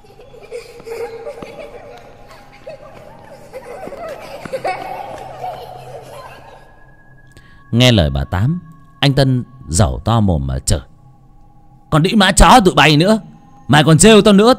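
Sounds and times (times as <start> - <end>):
children laughing: 0.0 - 7.1
speech: 7.7 - 10.9, 11.9 - 14.5.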